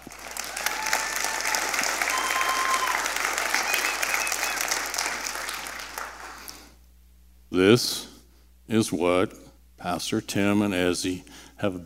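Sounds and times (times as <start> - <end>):
round of applause: 0.0 - 6.6
speech: 7.5 - 8.1, 8.7 - 11.8.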